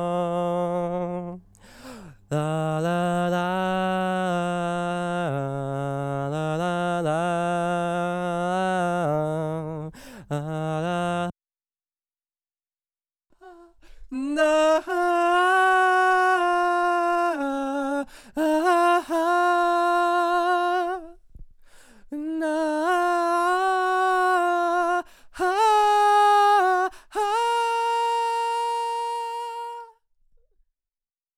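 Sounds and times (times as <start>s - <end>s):
dry vocal person singing la la la: 0.0s - 11.3s, 13.4s - 21.2s, 22.1s - 30.0s.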